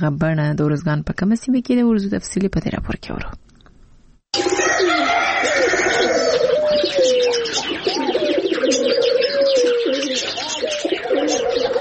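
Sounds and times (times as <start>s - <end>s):
speech: 0.0s - 3.4s
many kinds of birds calling at a bird zoo in Tarinkot, Uruzgan: 4.4s - 11.8s.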